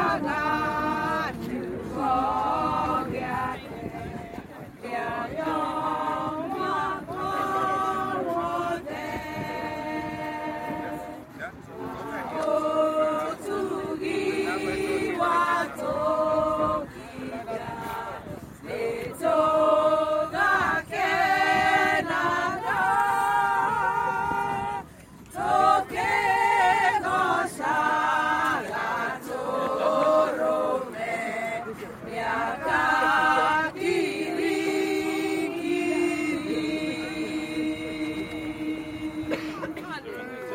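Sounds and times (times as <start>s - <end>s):
Kenyan women's choir singing: 0.0s - 40.5s.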